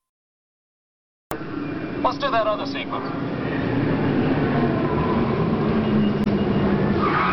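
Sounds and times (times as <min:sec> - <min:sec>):
speech: 0:01.3 - 0:03.9
car braking hard and skidding without ABS: 0:03.4 - 0:07.3.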